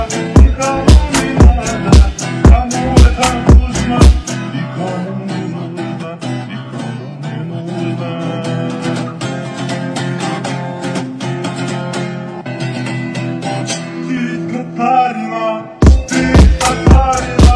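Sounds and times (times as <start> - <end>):
dance remix music: 0.0 - 4.4, 15.8 - 17.5.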